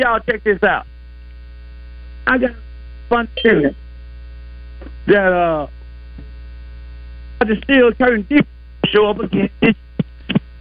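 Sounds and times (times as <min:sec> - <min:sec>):
speech: 0:00.0 - 0:00.9, 0:02.3 - 0:03.8, 0:05.0 - 0:05.8, 0:07.4 - 0:09.8
steady low electrical hum: 0:00.0 - 0:10.5
caller's voice breaking up over a phone line: 0:03.2 - 0:03.8, 0:07.4 - 0:10.4.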